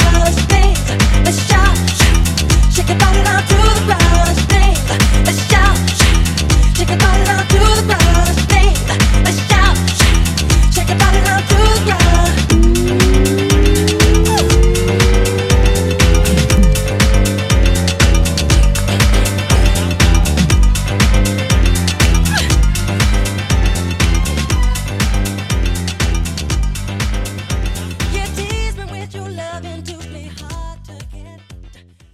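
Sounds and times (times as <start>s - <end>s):
club house music at 120 BPM: 0.0s - 28.7s.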